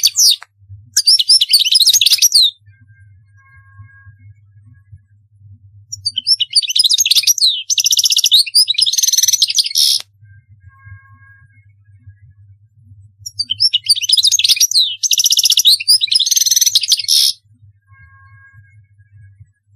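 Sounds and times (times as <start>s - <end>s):
European goldfinch song: 1.0s - 2.6s, 5.9s - 10.0s, 13.2s - 17.4s.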